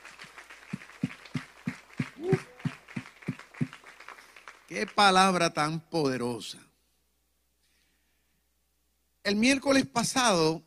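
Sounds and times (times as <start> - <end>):
audience applause: 0.0 - 5.1
speech: 2.2 - 2.5, 4.7 - 6.7, 9.3 - 10.6.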